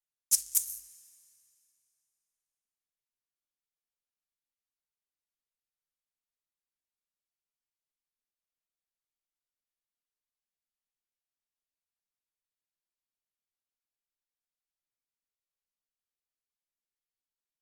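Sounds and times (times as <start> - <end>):
shaker: 0.3 - 1.6.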